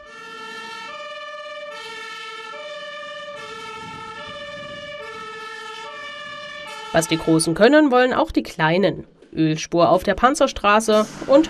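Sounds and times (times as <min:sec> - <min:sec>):
fire engine siren responding to alarm: 0:00.0 - 0:07.9
faint rumble of traffic: 0:00.0 - 0:11.4
speech: 0:06.9 - 0:11.4.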